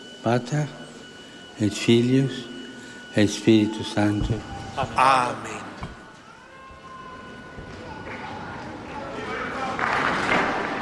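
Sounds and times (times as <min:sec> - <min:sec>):
faint tonal hum: 0:00.0 - 0:09.5
speech: 0:00.2 - 0:00.8, 0:01.6 - 0:02.5, 0:03.2 - 0:06.0
large crowd applauding: 0:08.0 - 0:10.8.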